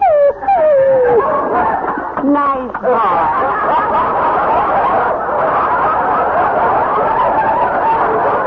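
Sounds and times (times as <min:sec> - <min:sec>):
dog whimpering: 0:00.0 - 0:01.8
laughter: 0:01.0 - 0:08.4.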